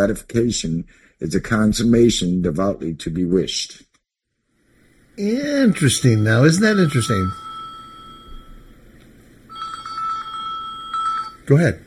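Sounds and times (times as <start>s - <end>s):
speech: 0.0s - 3.9s, 5.2s - 7.4s, 11.5s - 11.8s
electronic telephone ring: 5.4s - 8.8s, 9.5s - 11.5s.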